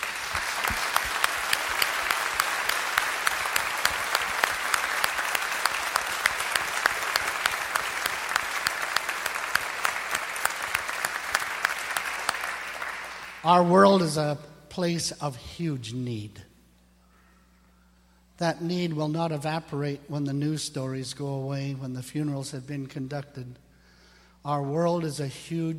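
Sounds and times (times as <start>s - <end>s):
audience applause: 0.0s - 13.7s
speech: 13.5s - 16.5s, 18.4s - 23.6s, 24.4s - 25.7s.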